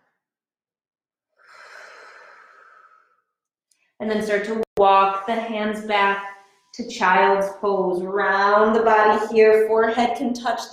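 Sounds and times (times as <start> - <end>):
breathing during a yoga class: 1.4 - 4.0, 6.2 - 6.8
speech: 4.0 - 10.7.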